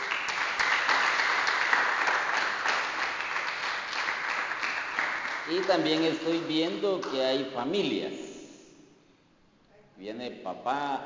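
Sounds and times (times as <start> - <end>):
audience applause at a live church gathering: 0.0 - 6.1
speech: 5.5 - 8.3, 10.0 - 11.0.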